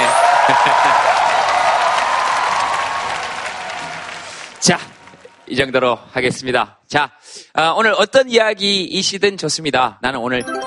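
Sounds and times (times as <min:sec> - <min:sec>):
audience applause: 0:00.0 - 0:05.4
laughter: 0:00.4 - 0:01.2
speech: 0:04.7 - 0:04.9, 0:05.5 - 0:10.6.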